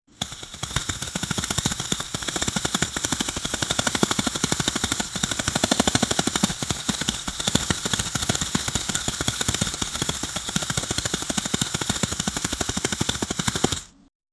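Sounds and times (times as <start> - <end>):
fast camera shutter: 0.1 - 14.1.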